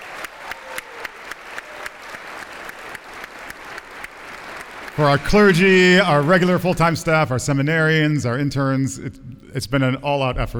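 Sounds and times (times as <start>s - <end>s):
audience applause: 0.0s - 7.2s
speech: 5.0s - 10.5s.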